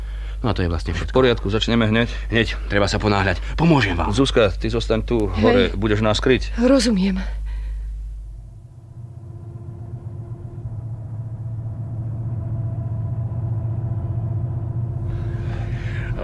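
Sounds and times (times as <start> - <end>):
speech: 0.4 - 7.4
distant car engines rumbling: 8.9 - 16.2.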